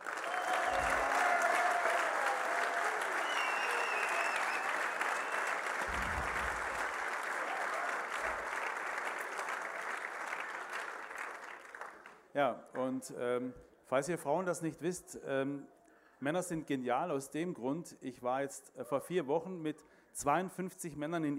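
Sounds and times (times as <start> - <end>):
audience applause: 0.0 - 12.2
speech: 12.4 - 21.3.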